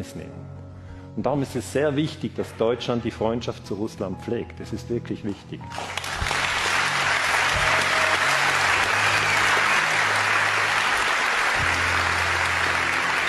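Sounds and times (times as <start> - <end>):
speech: 0.0 - 0.6, 1.2 - 6.1
audience applause: 5.7 - 13.2.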